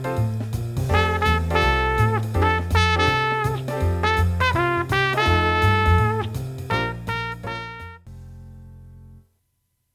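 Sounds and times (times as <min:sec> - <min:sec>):
trumpet solo: 0:00.9 - 0:08.1.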